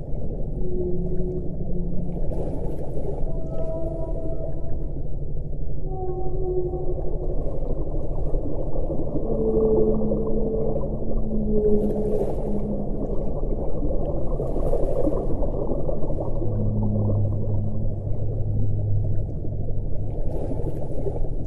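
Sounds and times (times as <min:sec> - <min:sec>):
whale sounds: 0:00.0 - 0:21.4.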